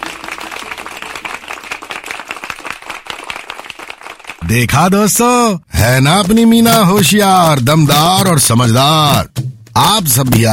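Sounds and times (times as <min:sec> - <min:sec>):
crowd applause: 0:00.0 - 0:04.7
speech: 0:04.5 - 0:10.5.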